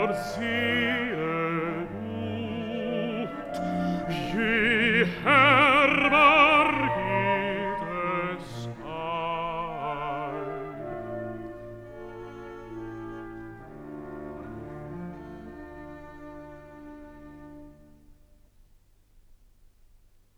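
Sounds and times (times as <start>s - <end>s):
bass singing recitative: 0.0s - 11.1s.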